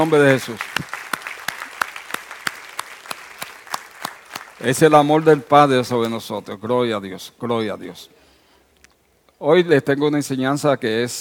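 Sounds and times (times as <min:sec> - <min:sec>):
speech: 0:00.0 - 0:00.9, 0:04.6 - 0:08.2, 0:09.4 - 0:11.1
audience applause: 0:00.0 - 0:04.9.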